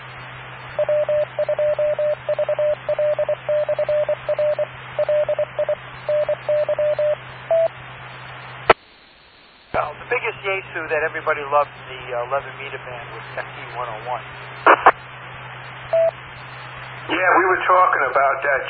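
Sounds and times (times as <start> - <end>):
telephone sounding electronic beeps: 0.8 - 7.7, 15.9 - 16.2
steady hiss: 7.2 - 18.6
speech: 10.8 - 14.6, 17.2 - 18.6.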